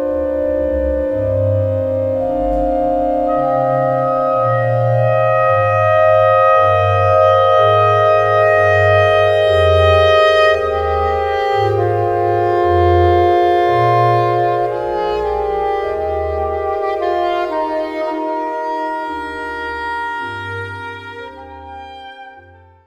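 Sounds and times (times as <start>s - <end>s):
oboe playing a largo sonata movement in C minor: 0.0s - 22.8s.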